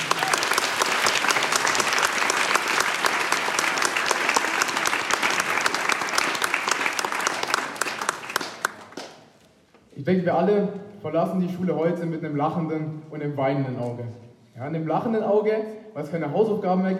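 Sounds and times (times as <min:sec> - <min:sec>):
audience applause: 0:00.0 - 0:09.3
speech: 0:10.1 - 0:16.9.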